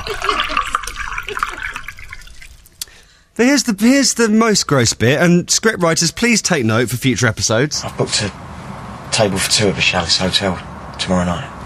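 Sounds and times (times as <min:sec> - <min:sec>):
wine pouring into a glass: 0:00.0 - 0:03.0
speech: 0:00.1 - 0:01.5, 0:03.4 - 0:08.5, 0:09.1 - 0:11.6.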